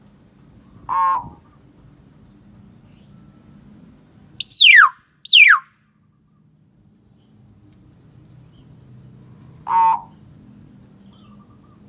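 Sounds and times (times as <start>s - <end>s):
common hill myna giving loud swooping whistles: 4.4s - 5.6s.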